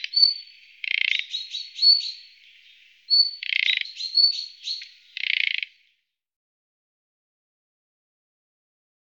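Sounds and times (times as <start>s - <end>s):
thrush nightingale song of sliding whistles and down-slurred notes: 0.0s - 6.0s.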